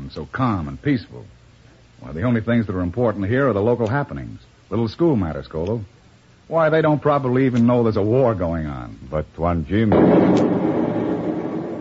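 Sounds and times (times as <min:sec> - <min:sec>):
speech: 0:00.1 - 0:01.4, 0:02.0 - 0:10.7
explosion: 0:09.9 - 0:11.7.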